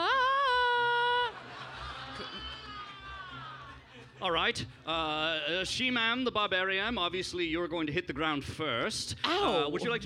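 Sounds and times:
person screaming: 0:00.0 - 0:01.3
laughter: 0:00.8 - 0:04.6
speech: 0:04.2 - 0:10.0.

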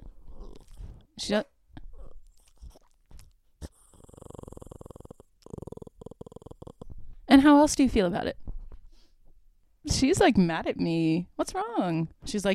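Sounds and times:
dog growling: 0:00.0 - 0:01.1, 0:01.8 - 0:07.0
speech: 0:01.2 - 0:01.6, 0:07.4 - 0:08.4, 0:09.9 - 0:12.5.

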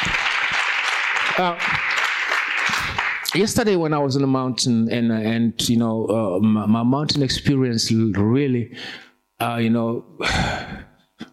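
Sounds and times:
church congregation clapping hands during a Sunday service: 0:00.0 - 0:04.0
speech: 0:01.4 - 0:01.8, 0:02.7 - 0:10.9.

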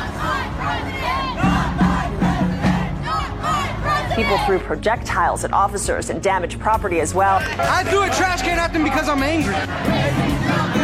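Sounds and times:
crowd shouting angrily: 0:00.0 - 0:04.6, 0:07.6 - 0:10.8
speech: 0:04.2 - 0:10.8.

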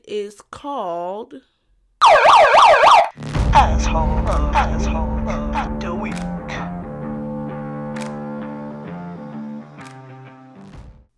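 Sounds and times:
speech: 0:00.1 - 0:02.6, 0:03.2 - 0:06.4
siren sound effect: 0:02.0 - 0:03.2.

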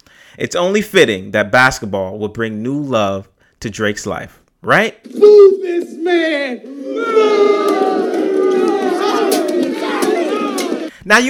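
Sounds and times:
speech: 0:00.3 - 0:08.0, 0:11.1 - 0:11.2
crowd booing: 0:05.0 - 0:11.0.

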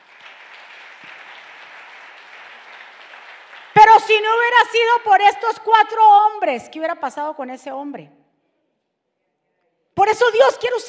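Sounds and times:
audience applause: 0:00.0 - 0:03.8
speech: 0:04.0 - 0:08.2, 0:10.1 - 0:10.8.

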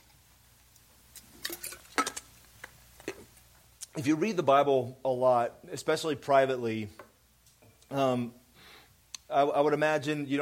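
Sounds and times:
light clinks and handling noises of taking a sip of water: 0:01.4 - 0:02.2
speech: 0:04.0 - 0:07.0, 0:07.9 - 0:08.4, 0:09.3 - 0:10.4.

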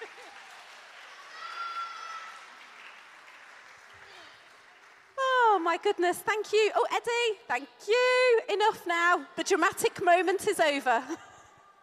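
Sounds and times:
congregation applause: 0:00.0 - 0:05.4
speech: 0:05.7 - 0:11.3.

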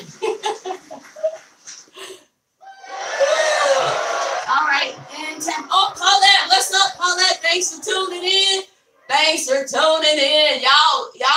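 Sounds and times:
laughter: 0:00.0 - 0:01.4
crowd cheering sound effect: 0:02.6 - 0:08.2
speech: 0:09.3 - 0:11.1.

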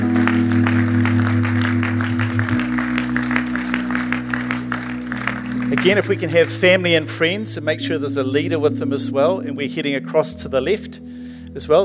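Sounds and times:
audience applause: 0:00.0 - 0:06.9
speech: 0:05.8 - 0:11.8.

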